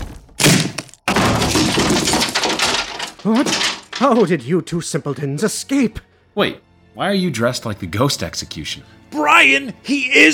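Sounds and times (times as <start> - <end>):
heavy crash of breaking and clattering debris: 0.0 - 4.4
dungeon door being smashed in: 0.4 - 4.3
speech: 3.2 - 10.3.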